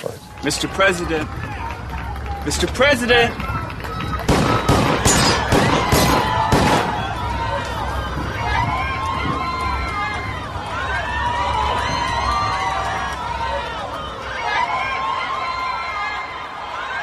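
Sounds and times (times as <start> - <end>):
crowd shouting in panic: 0.1 - 17.0
speech: 0.4 - 1.5, 2.4 - 3.5
gunshots: 4.3 - 7.2.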